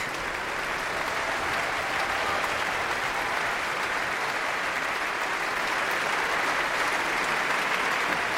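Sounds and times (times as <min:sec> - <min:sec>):
concert audience applause: 0:00.0 - 0:08.3.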